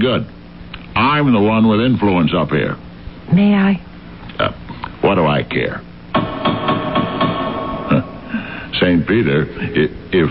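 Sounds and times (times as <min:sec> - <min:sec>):
speech: 0:00.0 - 0:00.4, 0:01.0 - 0:05.9, 0:08.8 - 0:10.2
knocking on a gate: 0:06.2 - 0:08.0.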